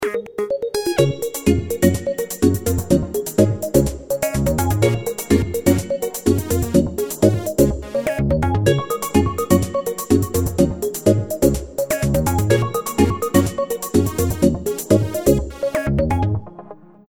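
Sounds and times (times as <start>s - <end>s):
music: 0.0s - 17.0s.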